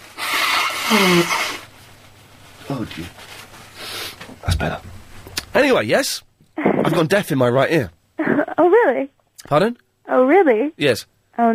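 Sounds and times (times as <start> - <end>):
person blowing their nose: 0.0 - 1.7, 3.7 - 4.2
speech: 0.9 - 1.4, 2.7 - 3.3, 4.4 - 4.9, 5.6 - 8.0, 8.6 - 11.5.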